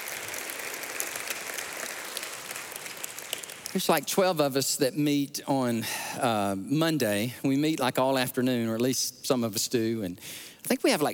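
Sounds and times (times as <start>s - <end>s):
audience applause: 0.0s - 3.8s
speech: 3.7s - 11.1s.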